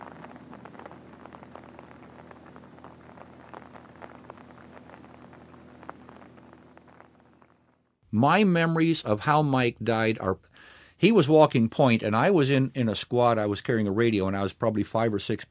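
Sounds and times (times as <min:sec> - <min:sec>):
rain falling at night: 0:00.0 - 0:07.9
speech: 0:08.2 - 0:15.4.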